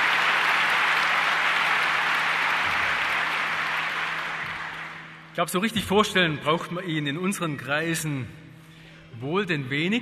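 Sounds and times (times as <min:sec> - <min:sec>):
audience applause: 0:00.0 - 0:05.2
speech: 0:05.4 - 0:08.4, 0:09.2 - 0:10.0.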